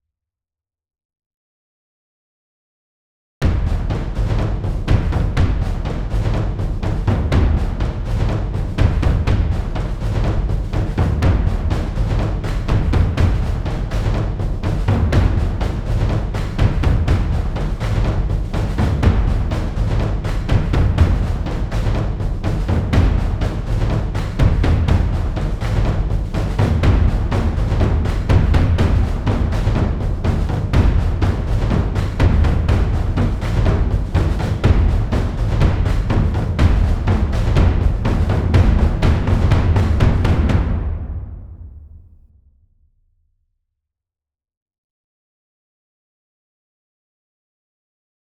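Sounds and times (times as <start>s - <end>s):
percussion: 3.4s - 42.2s.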